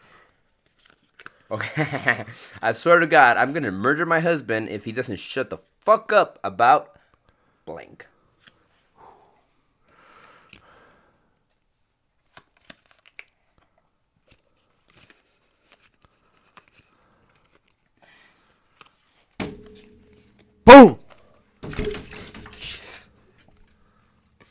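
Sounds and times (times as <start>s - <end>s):
playing cards shuffling: 0.6s - 1.4s, 12.2s - 13.6s, 14.2s - 18.0s, 18.7s - 19.4s
speech: 1.5s - 7.0s, 7.7s - 8.1s, 20.7s - 21.0s.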